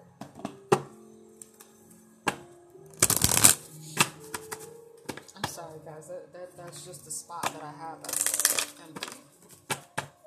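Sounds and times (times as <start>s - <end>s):
oracle cards being shuffled: 3.0s - 5.2s, 8.1s - 9.9s
speech: 5.8s - 9.2s.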